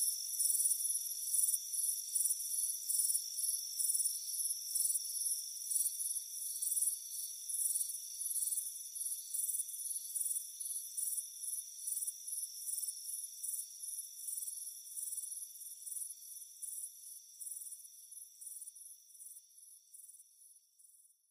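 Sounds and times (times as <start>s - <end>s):
cricket chirping: 0.0s - 21.2s.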